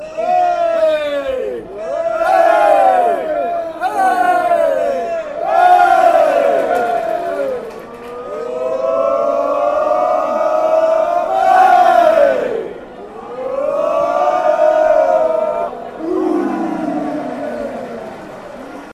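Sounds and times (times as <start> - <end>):
fans chanting: 0.0 - 18.9.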